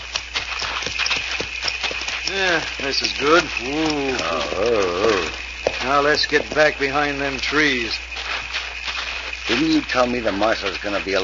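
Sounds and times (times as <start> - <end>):
horses clip-clopping: 0.0 - 11.2
low hum: 0.0 - 11.2
speech: 2.3 - 8.1, 9.5 - 11.2.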